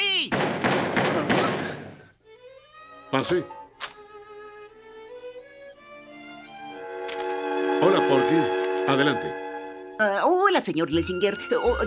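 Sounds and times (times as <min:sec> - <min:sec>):
steady noise: 0:00.0 - 0:11.8
heavy knocking on a door: 0:00.3 - 0:02.0
speech: 0:03.1 - 0:03.6, 0:10.6 - 0:11.8.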